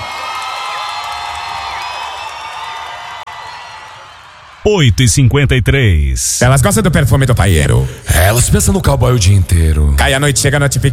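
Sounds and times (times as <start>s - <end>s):
large concert crowd cheering and screaming: 0.0s - 4.7s
speech: 4.7s - 10.9s.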